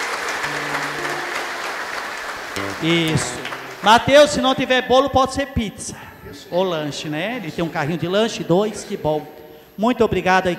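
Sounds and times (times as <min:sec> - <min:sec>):
applause for birthday person: 0:00.0 - 0:04.2
speech: 0:02.6 - 0:10.5.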